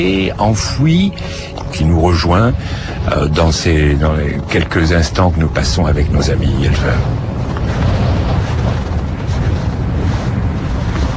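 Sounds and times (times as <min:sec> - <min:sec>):
speech: 0:00.0 - 0:07.2
strong wind buffeting the microphone: 0:00.0 - 0:11.1.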